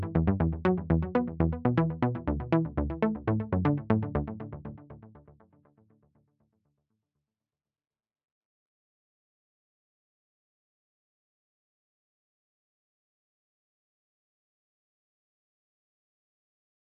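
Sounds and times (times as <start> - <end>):
mellow mix stem music loop: 0.0 - 5.0.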